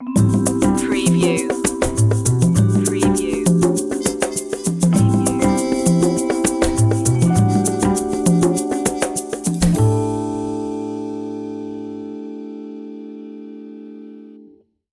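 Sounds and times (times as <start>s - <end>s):
jazzy opener music: 0.0s - 10.9s.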